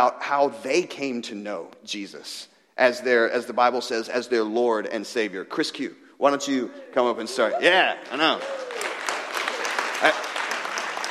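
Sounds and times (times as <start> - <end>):
speech: 0.0 - 8.9, 10.0 - 10.2
audience applause: 7.6 - 11.0.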